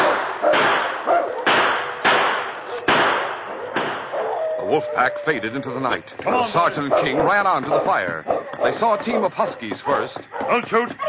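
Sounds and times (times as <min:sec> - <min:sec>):
gunshot blasts: 0:00.0 - 0:04.2
speech: 0:04.7 - 0:11.0.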